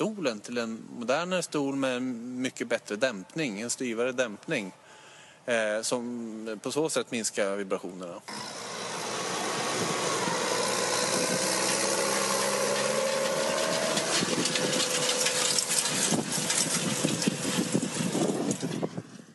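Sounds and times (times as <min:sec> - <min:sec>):
speech: 0:00.0 - 0:04.8, 0:05.5 - 0:08.7
Case IH Puma tractor driving past: 0:08.3 - 0:19.3
tractor rattling and clanking: 0:08.3 - 0:19.3.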